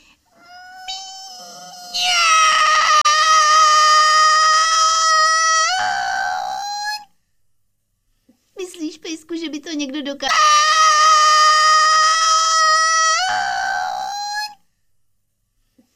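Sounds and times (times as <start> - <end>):
person imitating a cat meowing: 0.4 - 7.1, 10.3 - 14.6
speech: 9.7 - 10.4.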